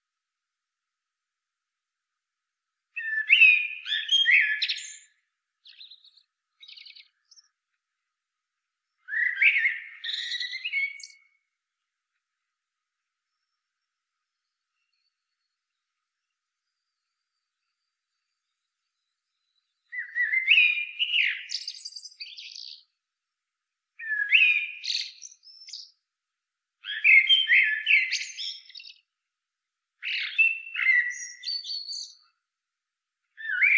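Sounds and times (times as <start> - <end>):
common blackbird singing: 3.0 - 7.6, 9.0 - 11.4, 16.7 - 23.0, 24.0 - 26.0, 26.8 - 29.1, 30.0 - 32.3, 33.4 - 33.7.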